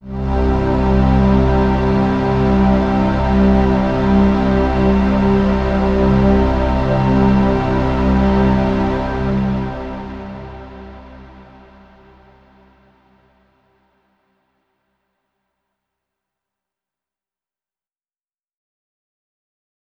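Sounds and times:
downtown overlay drone: 0:00.0 - 0:13.3.

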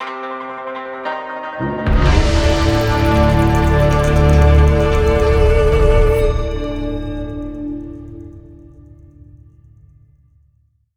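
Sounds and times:
round start sound: 0:01.9 - 0:09.4.

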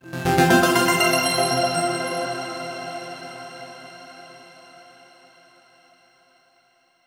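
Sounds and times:
overlay tone: 0:00.0 - 0:02.1.

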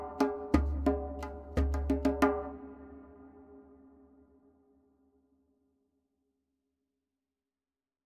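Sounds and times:
drums: 0:00.0 - 0:02.5.

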